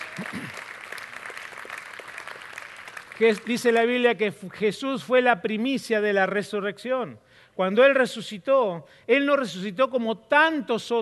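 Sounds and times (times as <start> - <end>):
audience applauding: 0.0 - 3.9
speech: 3.2 - 11.0.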